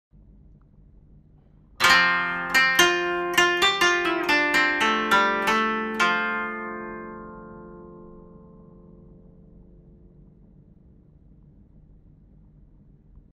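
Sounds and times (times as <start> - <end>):
koto: 1.8 - 10.7.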